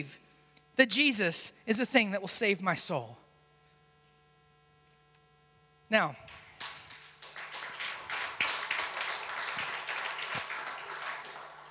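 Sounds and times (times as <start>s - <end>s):
speech: 0.0s - 0.2s, 0.8s - 3.2s, 5.9s - 6.3s
audience clapping: 6.3s - 11.6s.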